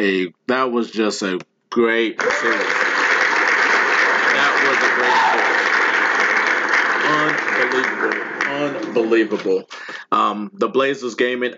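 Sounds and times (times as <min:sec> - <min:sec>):
speech: 0:00.0 - 0:02.9, 0:04.4 - 0:05.7, 0:07.1 - 0:11.5
crowd applause: 0:02.2 - 0:09.4.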